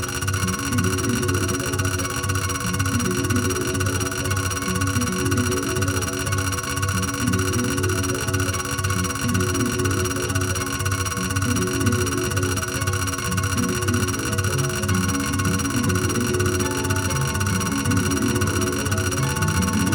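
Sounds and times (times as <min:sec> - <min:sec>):
acoustic guitar: 0:00.0 - 0:19.9.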